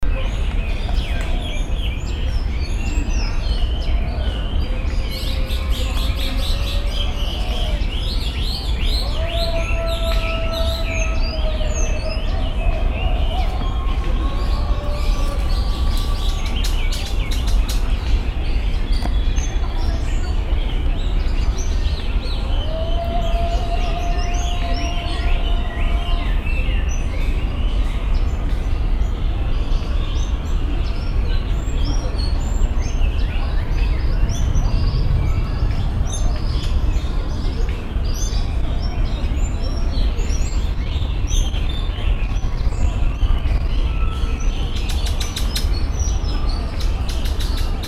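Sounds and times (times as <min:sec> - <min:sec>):
Sakhalin leaf warbler Phylloscopus borealoides: 0:00.1 - 0:47.8.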